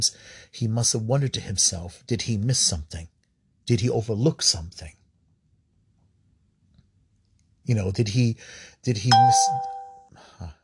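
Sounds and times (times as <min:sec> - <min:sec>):
speech: 0:00.0 - 0:05.0, 0:07.7 - 0:09.8
phone notification chime: 0:09.1 - 0:10.0.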